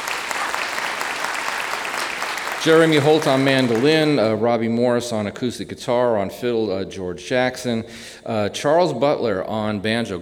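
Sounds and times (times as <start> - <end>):
audience applause for a bluegrass band: 0.0 - 4.4
speech: 2.6 - 10.2.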